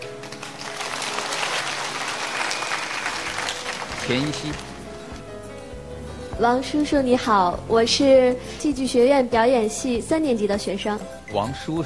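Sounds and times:
audience applause: 0:00.0 - 0:04.8
speech: 0:04.1 - 0:04.7, 0:06.4 - 0:11.8.

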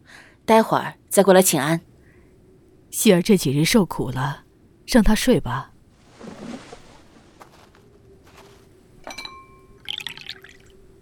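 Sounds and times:
speech: 0:00.5 - 0:01.9, 0:02.9 - 0:05.7
porcelain clink: 0:09.0 - 0:11.0
hot tea pouring into a cup: 0:09.8 - 0:10.8.

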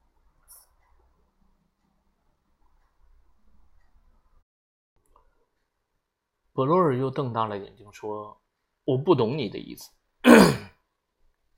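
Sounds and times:
speech: 0:06.6 - 0:10.6
throat clearing: 0:10.2 - 0:10.8.

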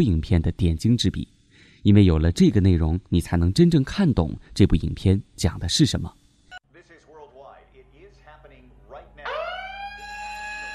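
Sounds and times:
speech: 0:00.0 - 0:06.2
siren wailing: 0:09.2 - 0:10.7.

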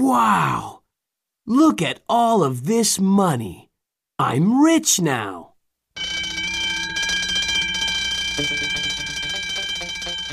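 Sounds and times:
speech: 0:00.0 - 0:00.8, 0:01.5 - 0:03.6, 0:04.2 - 0:05.5, 0:08.4 - 0:08.6
bank alarm siren ringing: 0:06.0 - 0:10.3.

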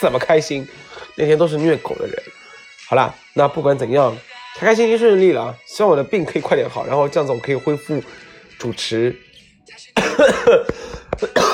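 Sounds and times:
speech: 0:00.0 - 0:11.5
harsh raspy coughing: 0:10.0 - 0:11.5.

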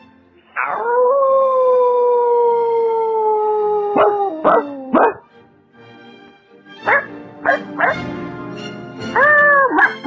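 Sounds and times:
person imitating wolf howl: 0:00.6 - 0:05.2, 0:09.1 - 0:09.9.

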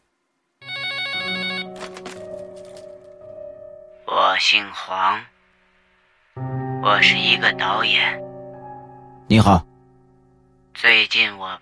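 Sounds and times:
telephone ringing loudly with a bright tonal electronic ring: 0:00.6 - 0:02.0
speech: 0:04.4 - 0:05.3, 0:06.8 - 0:08.2, 0:09.3 - 0:09.7, 0:10.8 - 0:11.6.

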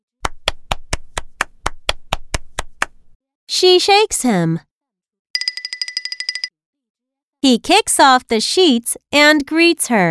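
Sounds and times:
hand clapping: 0:00.2 - 0:03.0
speech: 0:03.5 - 0:04.7, 0:07.4 - 0:10.0.

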